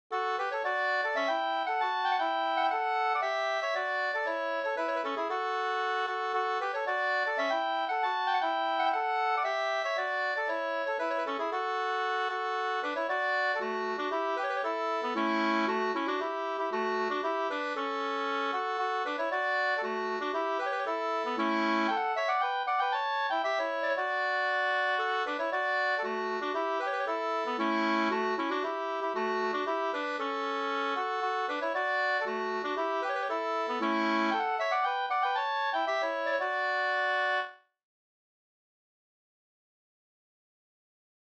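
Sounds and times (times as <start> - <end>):
polska folk dance tune: 0.1 - 37.6.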